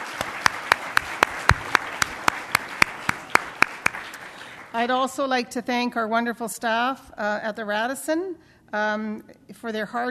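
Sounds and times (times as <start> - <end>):
audience applause: 0.0 - 4.8
speech: 4.7 - 10.0.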